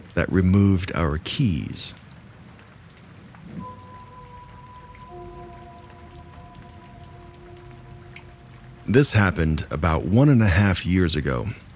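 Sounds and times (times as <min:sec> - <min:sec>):
steady rain: 0:00.0 - 0:11.7
speech: 0:00.2 - 0:02.0, 0:08.9 - 0:11.6
faint low drone of sustained tones: 0:03.5 - 0:10.2.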